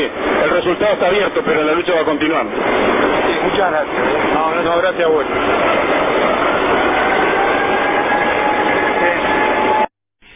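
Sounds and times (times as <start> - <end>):
speech: 0.0 - 6.2
factory siren signalling shift change: 2.6 - 9.9.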